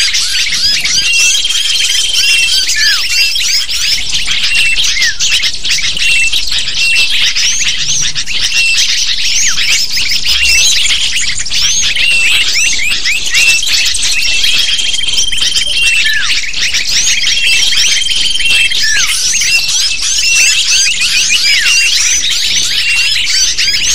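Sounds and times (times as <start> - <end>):
many lovebirds chattering: 0.0 - 23.9.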